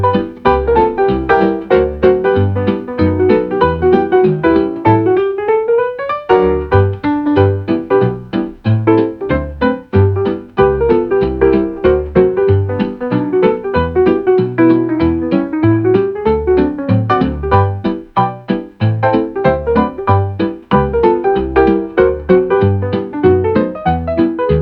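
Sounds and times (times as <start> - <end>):
instrumental swing music on an old gramophone: 0.0 - 24.5.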